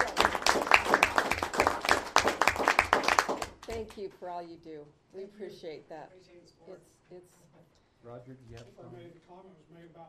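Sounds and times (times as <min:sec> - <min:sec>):
audience applause: 0:00.0 - 0:03.7
speech: 0:04.0 - 0:10.0.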